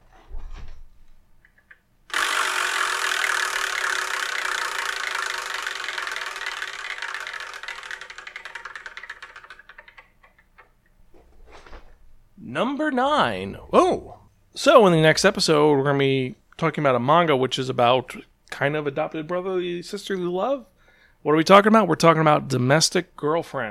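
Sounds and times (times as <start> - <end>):
Wheel of Manga prize wheel spinning: 2.1 - 10.7
speech: 12.6 - 23.6.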